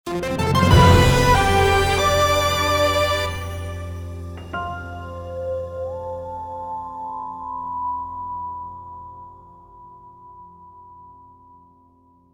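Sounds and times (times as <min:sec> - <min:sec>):
logo jingle: 0:00.1 - 0:04.5.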